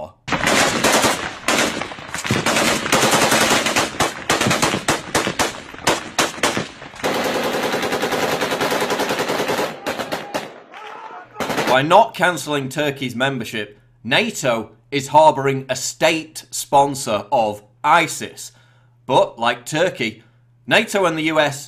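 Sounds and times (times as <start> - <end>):
automatic gunfire from rebels shooting at pilot: 0.3 - 10.7, 11.4 - 11.9
speech: 11.8 - 21.6.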